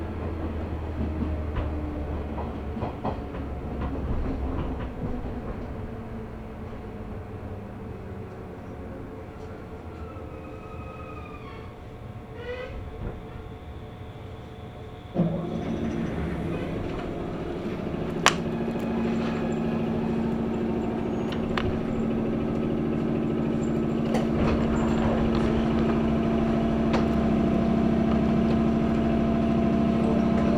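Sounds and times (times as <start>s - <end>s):
local train on the Chuo East Line rumbling: 0.0s - 30.5s
low motor hum: 15.2s - 30.5s
clicks and knocks: 18.1s - 27.3s.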